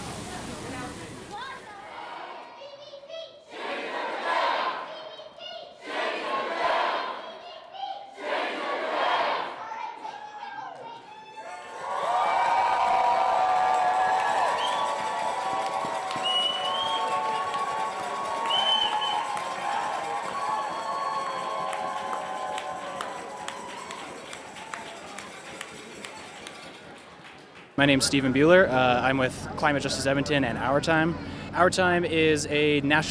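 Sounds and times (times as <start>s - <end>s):
crowd roaring: 1.7s - 2.5s, 3.5s - 4.9s, 5.8s - 7.3s, 8.2s - 9.7s, 11.4s - 25.2s
rally crowd chanting: 1.7s - 2.6s, 3.5s - 5.0s, 5.8s - 7.4s, 8.1s - 9.8s
speech: 27.8s - 33.0s.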